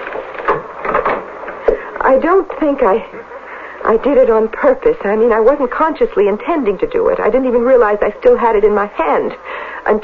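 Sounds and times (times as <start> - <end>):
door being shut: 0.0 - 1.4
speech: 2.1 - 10.0.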